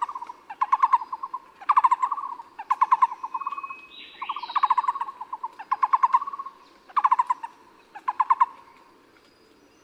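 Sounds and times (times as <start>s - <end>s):
Taiwan barbet: 0.0s - 8.8s.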